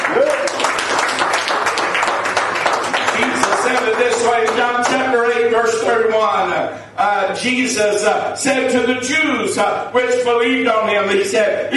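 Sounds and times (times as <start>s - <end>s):
people clapping hands: 0.0s - 5.3s
speech: 4.4s - 11.7s.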